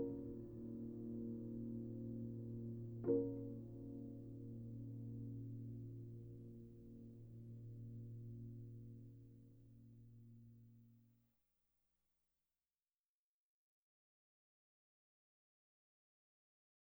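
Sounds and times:
solo piano: 0.0 - 10.8.

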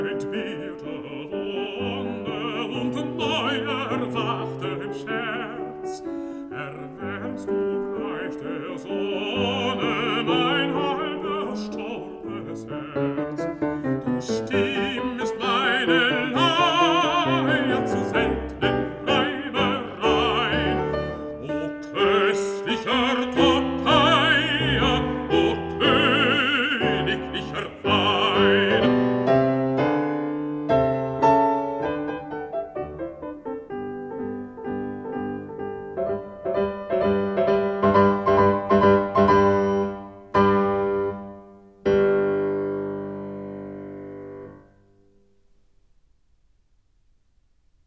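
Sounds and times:
person singing: 0.0 - 29.5
piano: 0.0 - 47.8.

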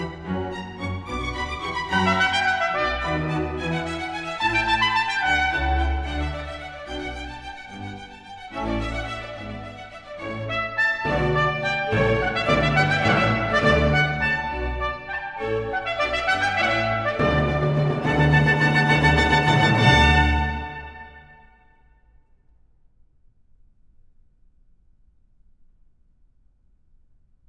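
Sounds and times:
trumpet: 0.0 - 7.9, 8.5 - 21.7
basso continuo: 0.0 - 21.5
string section: 0.0 - 21.6.

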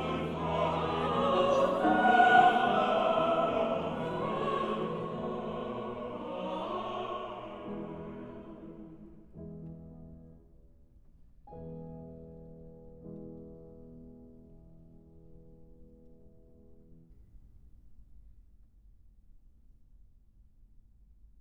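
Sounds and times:
mixed voice quartet singing: 0.0 - 9.2
piano: 0.0 - 18.5.

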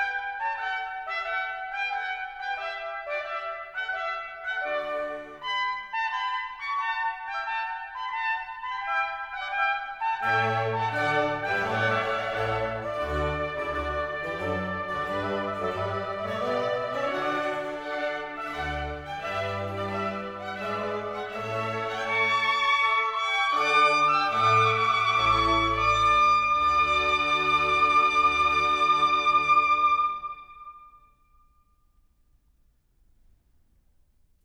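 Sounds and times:
trumpet: 0.0 - 31.1
continuo: 10.2 - 30.6
strings: 10.2 - 30.8.

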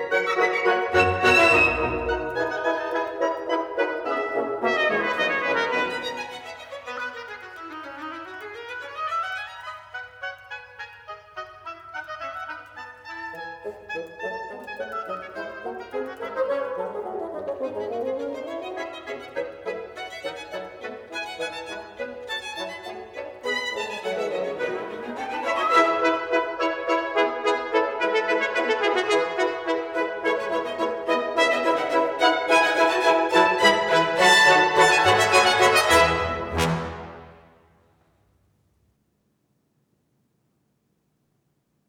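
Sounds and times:
orchestra playing a toccata: 0.0 - 7.3, 13.2 - 37.7.

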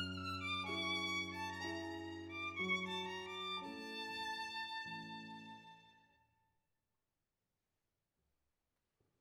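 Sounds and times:
piano accompanying a folk dance: 0.0 - 6.2
violin playing a folk dance: 0.0 - 6.3.

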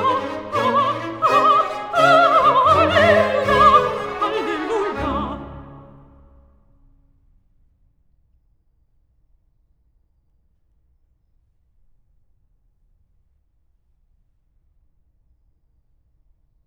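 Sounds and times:
voice with oboes and strings: 0.0 - 6.4.

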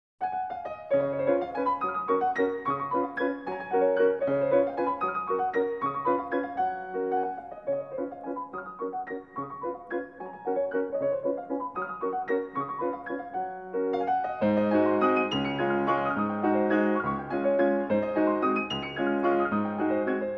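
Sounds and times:
piano waltz in G flat: 0.2 - 20.3.

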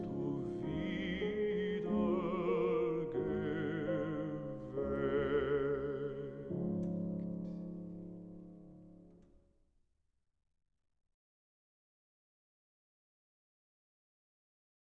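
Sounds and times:
lullaby: 0.0 - 8.2.

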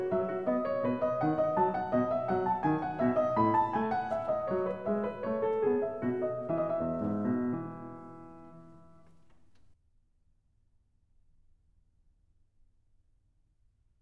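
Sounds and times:
baroque keyboard suite movement in E major: 0.0 - 9.0.

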